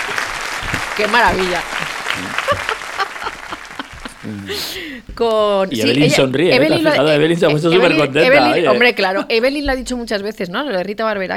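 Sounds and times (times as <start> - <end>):
audience clapping: 0.0 - 8.2
speech: 1.0 - 3.4, 4.2 - 11.3
voices speaking and laughing: 1.2 - 9.4.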